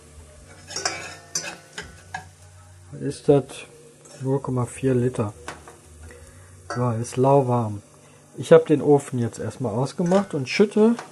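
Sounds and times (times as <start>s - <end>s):
utensil scraping and clinking against a pot of lukewarm milk and stock: 0.4s - 2.3s
speech: 2.9s - 5.4s, 6.8s - 11.1s.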